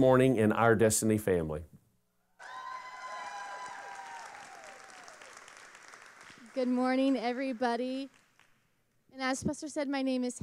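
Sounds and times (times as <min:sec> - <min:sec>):
speech: 0:00.0 - 0:01.8, 0:06.6 - 0:08.2, 0:09.2 - 0:10.4
audience applause: 0:02.4 - 0:08.6.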